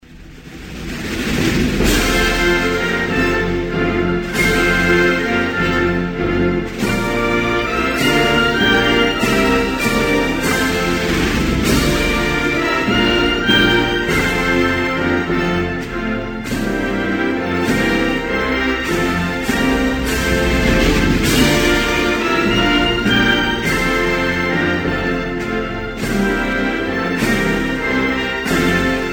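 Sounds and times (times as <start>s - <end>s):
national anthem music: 0.8s - 29.1s.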